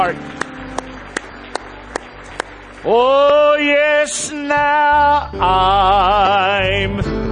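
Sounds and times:
speech: 0:00.0 - 0:00.4, 0:02.8 - 0:07.2
church congregation clapping hands in praise during a worship service: 0:00.0 - 0:04.6.

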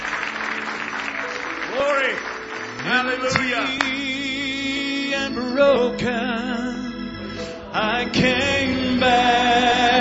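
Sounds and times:
audience hand clapping in praise: 0:00.0 - 0:04.2
speech: 0:01.8 - 0:04.0, 0:05.2 - 0:06.8, 0:07.7 - 0:09.9.

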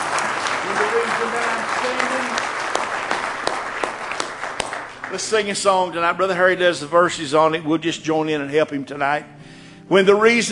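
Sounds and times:
audience clapping hands in praise: 0:00.0 - 0:06.1
speech: 0:05.1 - 0:10.5.

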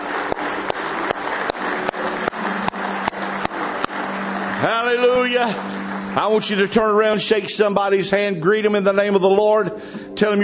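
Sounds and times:
audience hand clapping of praise: 0:00.0 - 0:09.0
speech: 0:04.6 - 0:10.4.

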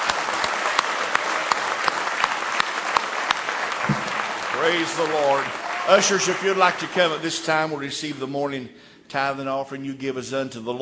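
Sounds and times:
audience hand clapping: 0:00.0 - 0:07.8
speech: 0:04.6 - 0:10.8.

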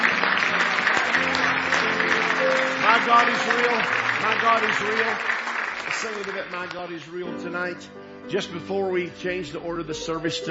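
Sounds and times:
church congregation giving a hand clap of praise: 0:00.0 - 0:07.5
speech: 0:03.0 - 0:05.4, 0:06.0 - 0:10.4.

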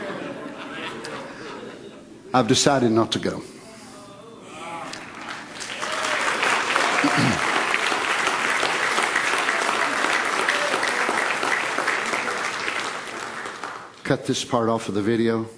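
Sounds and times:
laughter: 0:00.0 - 0:02.3, 0:06.7 - 0:07.6
speech: 0:02.3 - 0:03.5, 0:07.1 - 0:07.4, 0:14.1 - 0:15.5
audience applause, hand clapping: 0:04.9 - 0:14.0.

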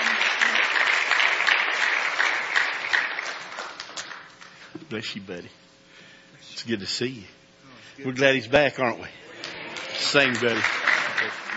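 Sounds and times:
audience applause: 0:00.0 - 0:04.3, 0:09.4 - 0:11.5
speech: 0:04.9 - 0:05.7, 0:06.6 - 0:09.2, 0:10.1 - 0:11.5.

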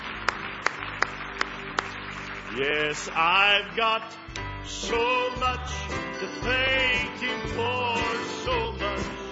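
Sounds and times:
congregation hand clapping in a slow steady beat: 0:00.0 - 0:02.6
speech: 0:02.6 - 0:09.2.

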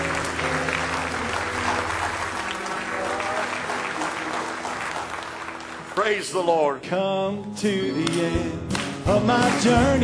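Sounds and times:
audience clapping in praise: 0:00.0 - 0:06.7, 0:08.0 - 0:10.0
speech: 0:06.1 - 0:10.0.

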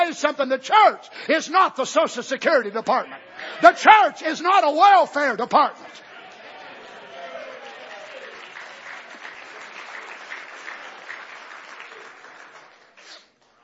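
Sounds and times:
speech: 0:00.1 - 0:06.1
audience clapping hands: 0:06.0 - 0:13.6.

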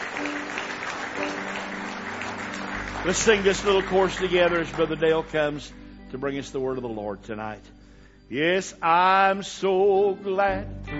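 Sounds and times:
church congregation clapping in praise during an evening service: 0:00.0 - 0:05.8
speech: 0:03.0 - 0:10.9.

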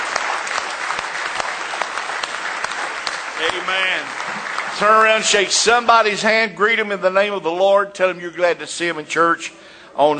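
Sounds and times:
audience hand clapping: 0:00.0 - 0:05.9
speech: 0:03.4 - 0:10.1.

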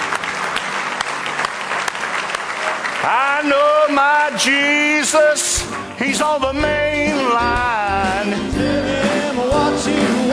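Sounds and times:
audience applause: 0:00.0 - 0:05.9
speech: 0:03.0 - 0:10.3.

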